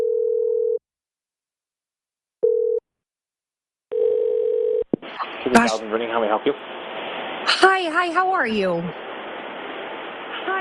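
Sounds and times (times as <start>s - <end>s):
telephone ringing tone on a call: 0.0s - 0.8s, 2.4s - 2.8s, 3.9s - 4.9s
speech: 5.5s - 6.8s, 7.5s - 9.1s.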